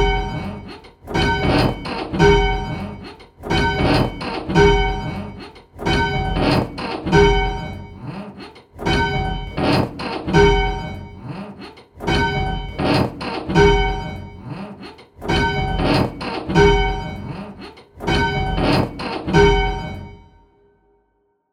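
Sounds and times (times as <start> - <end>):
bells: 0.0 - 8.0, 8.9 - 9.8, 10.4 - 11.3, 12.1 - 12.8, 13.6 - 14.5, 15.3 - 17.5, 18.1 - 20.4.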